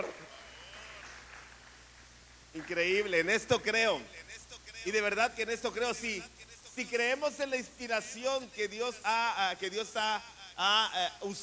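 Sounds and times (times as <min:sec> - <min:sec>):
audience applause: 0:00.0 - 0:01.8
speech: 0:02.6 - 0:11.4.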